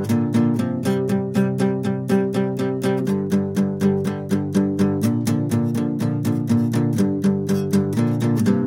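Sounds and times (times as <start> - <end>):
guitar playing a verse: 0.0 - 8.6.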